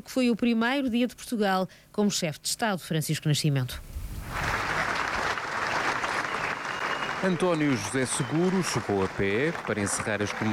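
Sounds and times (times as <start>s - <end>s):
speech: 0.0s - 4.5s, 7.2s - 10.5s
applause from hundreds of people in Alfândega courtyard at a flag lowering: 4.2s - 10.5s.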